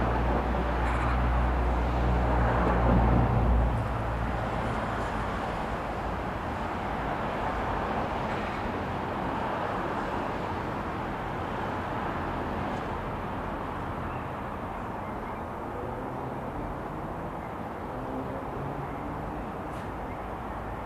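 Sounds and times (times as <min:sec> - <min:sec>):
suburban light traffic: 0:00.0 - 0:20.8
suburban street ambience: 0:00.0 - 0:20.8.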